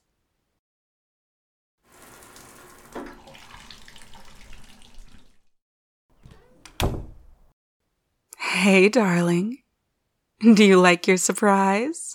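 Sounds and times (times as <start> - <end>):
shower water running: 1.8 - 5.6
speech: 8.6 - 9.6, 10.4 - 12.1.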